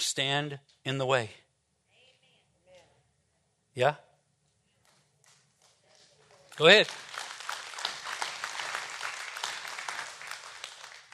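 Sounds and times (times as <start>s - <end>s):
speech: 0.2s - 1.4s, 3.8s - 4.1s, 6.6s - 7.1s
audience clapping: 5.3s - 11.1s.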